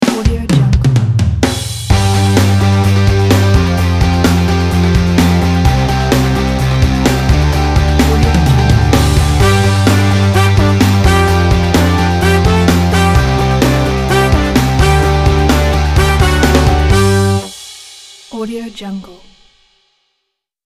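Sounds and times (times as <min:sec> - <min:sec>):
powerful driving rock logo music: 0:00.0 - 0:17.7.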